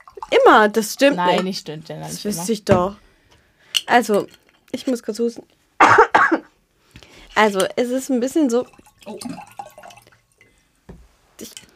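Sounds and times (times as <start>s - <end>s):
liquid spilled across the table: 0.0s - 1.4s, 8.4s - 10.5s
speech: 0.4s - 3.0s, 3.9s - 6.1s, 7.4s - 9.5s.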